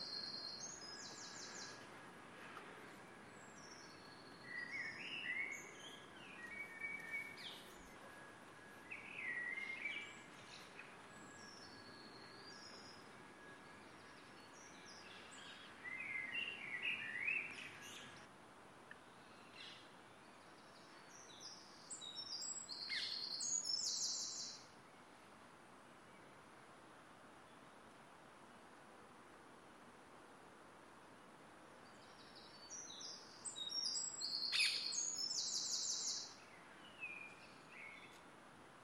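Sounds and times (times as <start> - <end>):
Saturday morning birdsong: 0.0 - 18.3, 18.9 - 24.7, 31.8 - 38.2.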